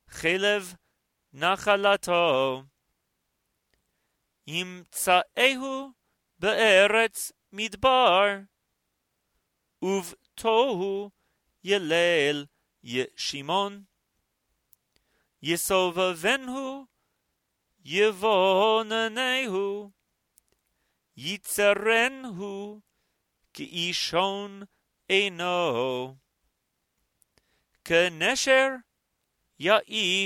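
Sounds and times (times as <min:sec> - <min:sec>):
person chanting Torah scripture: 0:00.1 - 0:00.8, 0:01.4 - 0:02.7, 0:04.5 - 0:08.5, 0:09.8 - 0:13.9, 0:15.4 - 0:16.9, 0:17.8 - 0:19.9, 0:21.2 - 0:22.8, 0:23.6 - 0:26.2, 0:27.9 - 0:28.9, 0:29.6 - 0:30.2.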